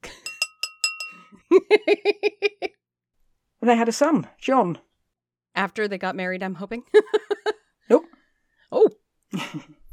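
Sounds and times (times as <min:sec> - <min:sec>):
bell ringing: 0:00.3 - 0:01.3
speech: 0:01.7 - 0:02.3, 0:03.7 - 0:04.9, 0:05.6 - 0:08.1.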